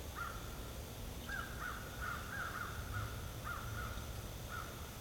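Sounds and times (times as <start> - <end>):
crow cawing: 0.2 - 0.5, 1.3 - 4.9.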